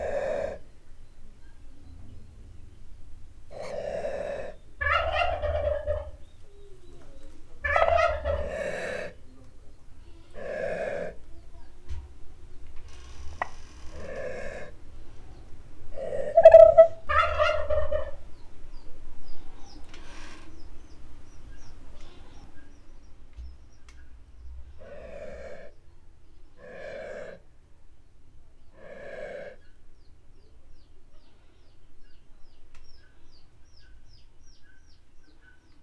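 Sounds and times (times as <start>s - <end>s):
male turkey making a rare call while guarding its chicks: 0.0s - 22.7s.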